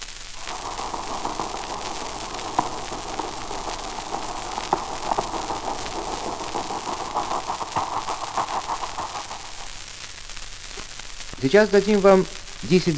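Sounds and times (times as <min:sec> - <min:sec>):
merchant steamship steam engines: 0:00.4 - 0:09.8
speech: 0:11.4 - 0:12.9.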